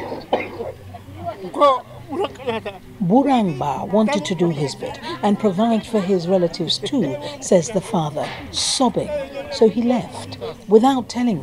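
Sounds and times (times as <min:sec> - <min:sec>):
laughter: 0:00.0 - 0:11.2
wheezy asthmatic cough of elderly man: 0:00.1 - 0:00.8
speech: 0:01.4 - 0:11.4
raspy breathing: 0:04.9 - 0:05.3, 0:07.1 - 0:07.6, 0:10.2 - 0:10.8.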